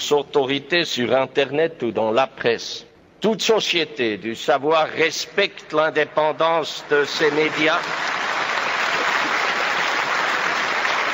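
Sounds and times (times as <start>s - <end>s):
speech: 0.1s - 8.2s
crowd applauding: 6.9s - 11.1s.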